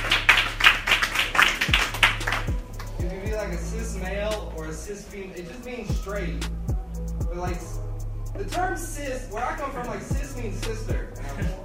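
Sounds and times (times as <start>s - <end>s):
audience clapping: 0.0s - 3.0s
speech: 3.5s - 6.7s, 7.4s - 11.6s.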